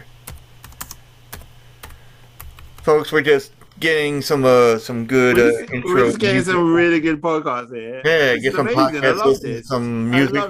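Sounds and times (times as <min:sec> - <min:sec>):
computer keyboard typing: 0:00.0 - 0:03.0
low steady hum: 0:00.0 - 0:10.4
speech: 0:02.9 - 0:10.4.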